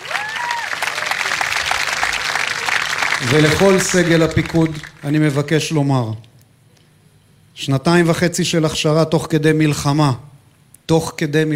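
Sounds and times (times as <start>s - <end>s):
audience applause: 0.0s - 5.4s
speech: 3.2s - 6.3s, 7.6s - 10.3s, 10.9s - 11.5s.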